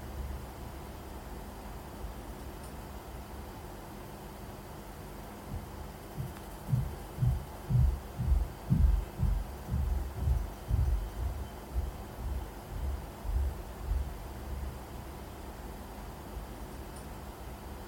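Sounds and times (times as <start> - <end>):
footsteps in a bedroom with a concrete ceiling: 5.5 - 14.0.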